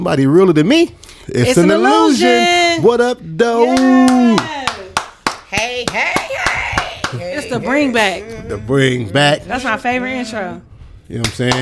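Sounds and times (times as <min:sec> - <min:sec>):
speech: 0:00.0 - 0:04.6, 0:05.5 - 0:11.6
hand claps: 0:03.7 - 0:07.3, 0:11.2 - 0:11.6.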